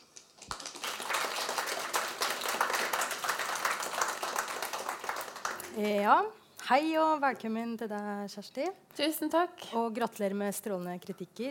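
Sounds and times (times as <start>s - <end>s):
audience applauding: 0.0s - 5.9s
speech: 5.8s - 11.4s.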